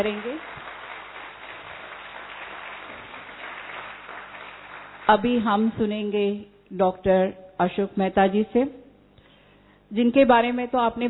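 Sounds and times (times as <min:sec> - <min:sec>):
speech: 0:00.0 - 0:00.6, 0:05.1 - 0:08.8, 0:09.9 - 0:11.0
audience applause: 0:00.0 - 0:05.4.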